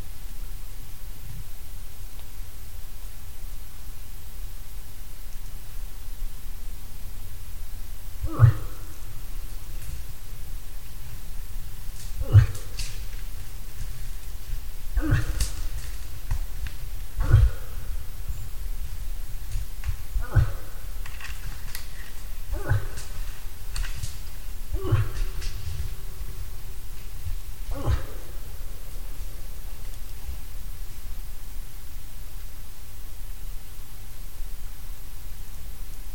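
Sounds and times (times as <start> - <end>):
deep continuous rumble: 0.0 - 35.3
moose grunts: 8.1 - 30.1.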